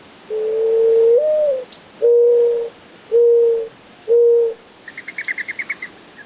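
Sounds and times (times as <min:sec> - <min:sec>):
Mourning Dove cooing: 0:00.3 - 0:04.6.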